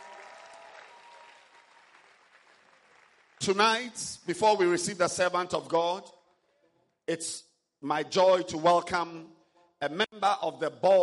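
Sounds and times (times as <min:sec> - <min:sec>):
church congregation clapping hands: 0:00.0 - 0:04.2
speech: 0:03.4 - 0:06.2, 0:07.1 - 0:11.0.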